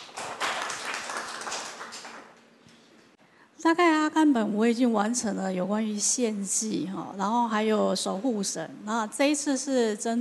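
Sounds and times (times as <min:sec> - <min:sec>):
audience applause: 0:00.0 - 0:02.4
speech: 0:03.6 - 0:10.1.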